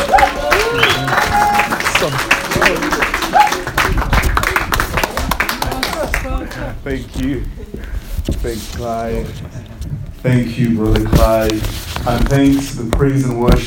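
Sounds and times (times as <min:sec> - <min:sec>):
whoops and cheering voices: 0:00.0 - 0:02.2, 0:03.2 - 0:03.8
audience applause: 0:00.0 - 0:06.8
speech: 0:08.5 - 0:13.6.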